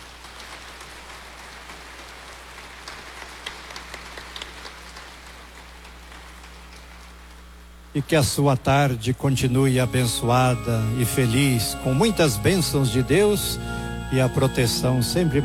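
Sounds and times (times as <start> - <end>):
applause: 0.0 - 7.4
speech: 7.9 - 15.4.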